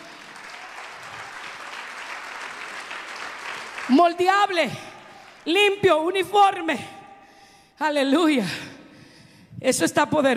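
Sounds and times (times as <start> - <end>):
audience applauding: 0.0 - 5.5
speech: 3.9 - 7.0, 7.8 - 8.7, 9.6 - 10.3.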